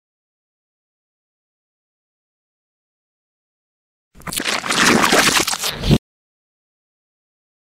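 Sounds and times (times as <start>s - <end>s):
reversed splat: 4.2s - 6.0s.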